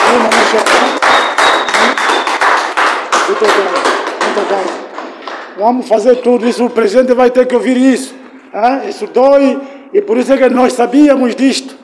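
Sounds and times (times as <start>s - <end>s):
applause for a girl: 0.0s - 5.6s
speech: 0.2s - 1.0s, 3.4s - 3.8s, 5.6s - 11.8s.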